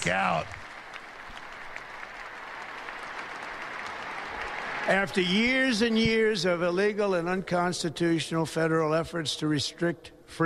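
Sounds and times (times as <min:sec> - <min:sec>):
speech: 0:00.0 - 0:00.6, 0:04.8 - 0:10.4
audience clapping: 0:00.0 - 0:06.4.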